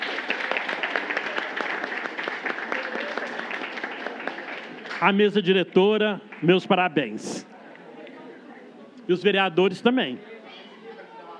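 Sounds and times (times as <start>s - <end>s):
applause: 0.0s - 5.6s, 6.2s - 6.7s
speech: 5.0s - 7.5s, 9.1s - 10.3s.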